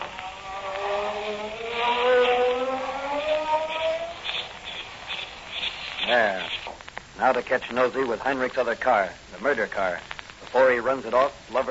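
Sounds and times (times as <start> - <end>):
ray gun burning through handcuffs: 0.0 - 6.9
speech: 7.2 - 11.7.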